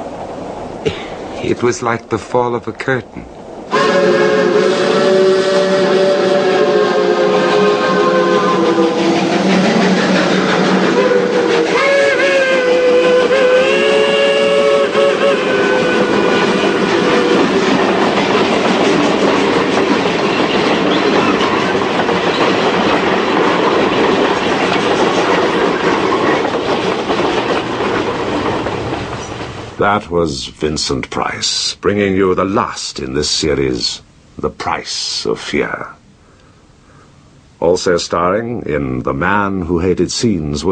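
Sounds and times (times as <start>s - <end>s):
train rail rumble entering a tunnel: 0.0s - 37.9s
speech: 0.8s - 4.3s, 29.9s - 36.0s, 37.6s - 40.7s
clattering train wheels: 16.3s - 29.7s.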